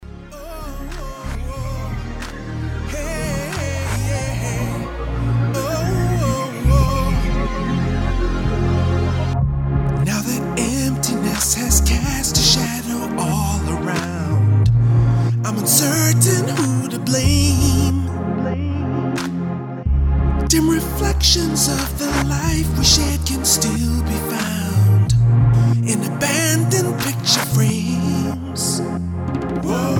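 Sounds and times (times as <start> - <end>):
distorted sound: 0.0 - 29.9.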